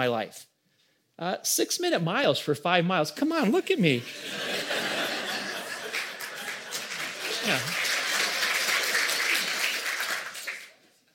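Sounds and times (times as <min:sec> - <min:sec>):
speech: 0:00.0 - 0:00.5, 0:01.2 - 0:05.0, 0:07.4 - 0:07.8
laughter: 0:03.7 - 0:08.4
thin scattered applause from a small group: 0:05.3 - 0:10.9.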